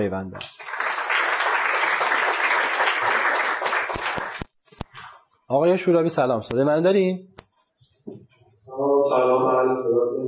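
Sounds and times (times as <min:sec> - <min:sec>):
speech: 0:00.0 - 0:00.7, 0:05.5 - 0:07.3, 0:08.1 - 0:10.2
crowd applause welcoming a guest: 0:00.4 - 0:04.4.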